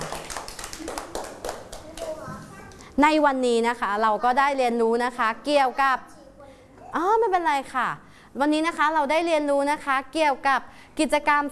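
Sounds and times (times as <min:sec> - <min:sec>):
children clapping hands: 0:00.0 - 0:02.8
speech: 0:03.0 - 0:06.1, 0:06.9 - 0:11.5.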